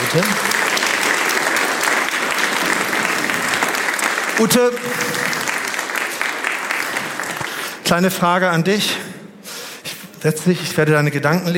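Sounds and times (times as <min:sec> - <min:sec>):
big audience applause: 0:00.0 - 0:08.0
speech: 0:00.1 - 0:00.5, 0:04.4 - 0:05.4, 0:07.9 - 0:09.1, 0:10.2 - 0:11.5.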